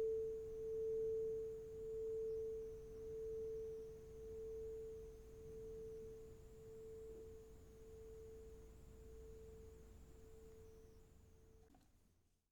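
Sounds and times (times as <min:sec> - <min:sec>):
crystal singing bowls ringing: 0:00.0 - 0:08.4.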